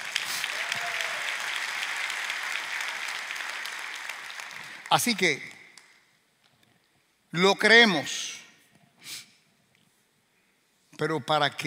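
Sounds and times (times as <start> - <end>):
audience applauding: 0.0 - 5.5
speech: 4.9 - 5.5, 7.3 - 8.2, 11.0 - 11.6.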